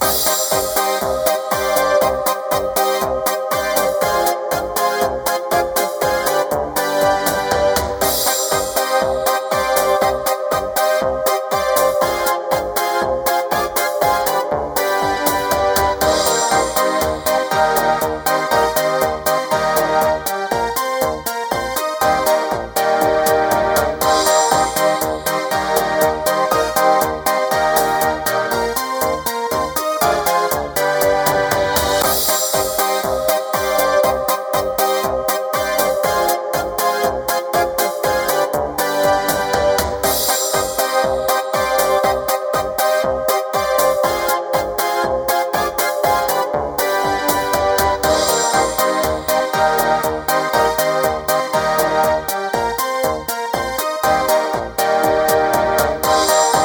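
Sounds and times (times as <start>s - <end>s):
ragtime loop on radio: 0.0s - 56.6s.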